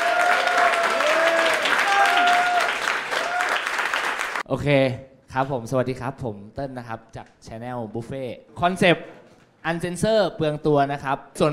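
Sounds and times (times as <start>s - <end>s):
audience applause: 0.0s - 4.4s
people whooping and cheering: 0.0s - 4.4s
speech: 4.5s - 11.5s.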